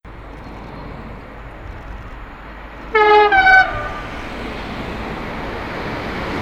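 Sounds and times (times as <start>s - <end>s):
typhon horn: 2.9s - 4.2s.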